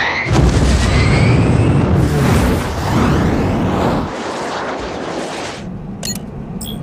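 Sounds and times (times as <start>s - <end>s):
missile launch rocket roar with whistling tones: 0.0s - 6.0s.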